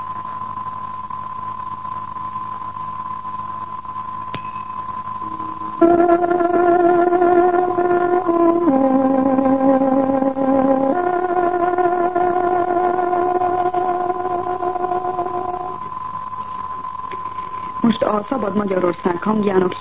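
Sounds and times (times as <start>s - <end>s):
tárogató playing a radio time-signal melody: 5.2s - 15.6s
speech: 5.8s - 6.6s, 18.6s - 19.8s.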